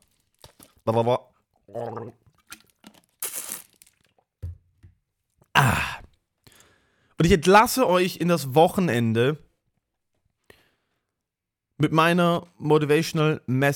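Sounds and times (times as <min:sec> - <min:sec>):
taking a sip of water: 0:00.4 - 0:04.3
speech: 0:00.8 - 0:02.2, 0:07.2 - 0:09.4, 0:11.8 - 0:13.7.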